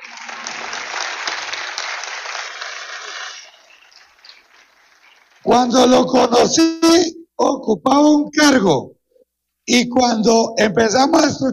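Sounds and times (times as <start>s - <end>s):
audience applause: 0.0s - 5.7s
speech: 5.4s - 9.0s, 9.7s - 11.5s.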